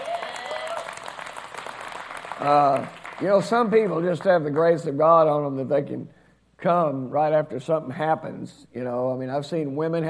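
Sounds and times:
audience applauding: 0.0 - 3.6
speech: 2.4 - 10.0.

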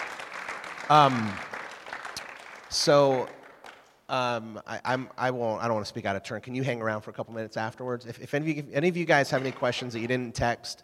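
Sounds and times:
crowd applause: 0.0 - 4.0
speech: 0.9 - 1.4, 2.7 - 3.4, 4.1 - 10.8.

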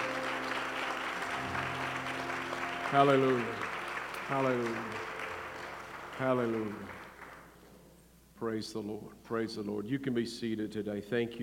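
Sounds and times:
audience clapping: 0.0 - 7.8
speech: 2.9 - 3.7, 4.3 - 5.1, 6.2 - 7.0, 8.4 - 11.4.

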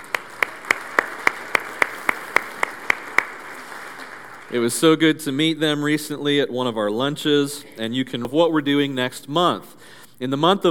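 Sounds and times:
church service clapping welcoming new members: 0.0 - 5.0
speech: 4.5 - 10.6.

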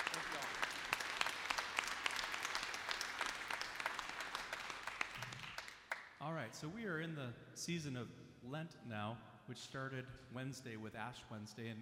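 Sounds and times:
audience applauding to welcome a new executive director: 0.0 - 6.1
speech: 6.5 - 11.8.

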